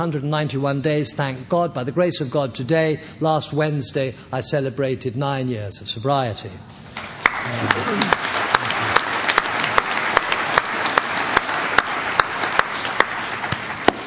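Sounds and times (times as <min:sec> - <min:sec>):
speech: 0:00.0 - 0:08.3
audience applauding: 0:07.0 - 0:14.0.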